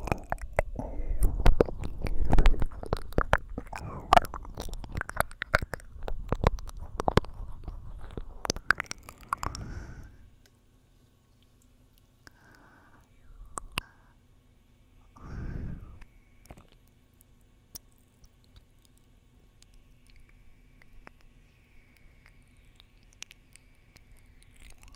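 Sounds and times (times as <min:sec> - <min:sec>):
gentle soothing ear licking: 0:00.0 - 0:10.2, 0:17.8 - 0:24.9.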